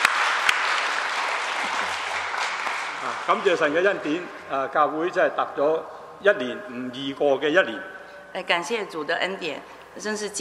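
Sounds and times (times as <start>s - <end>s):
audience applauding: 0.0s - 3.9s
speech: 3.3s - 10.4s.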